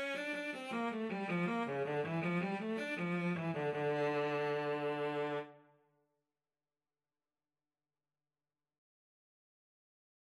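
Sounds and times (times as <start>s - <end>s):
cello duet: 0.0s - 5.6s.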